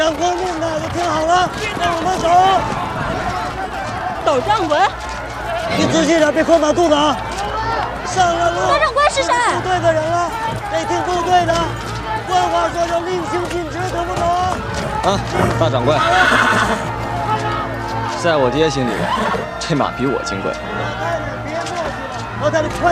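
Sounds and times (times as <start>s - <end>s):
people talking: 0.0s - 5.0s, 5.7s - 22.8s
clip-clopping hooves: 0.0s - 22.8s
crowd murmur: 0.0s - 22.8s
horse neighing: 15.2s - 17.0s, 18.8s - 19.6s.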